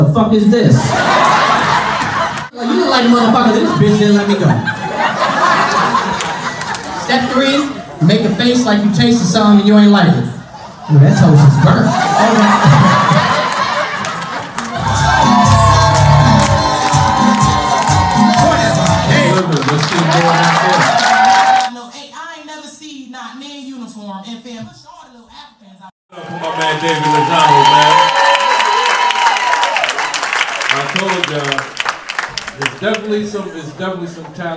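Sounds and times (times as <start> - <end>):
speech: 0.0 - 1.4, 2.6 - 5.3, 7.1 - 13.3, 26.6 - 28.0, 32.8 - 34.5
laughter: 0.7 - 7.1, 10.5 - 17.4
crowd clapping and cheering with whoops and shouts: 5.7 - 7.0, 12.0 - 21.7, 26.1 - 33.2.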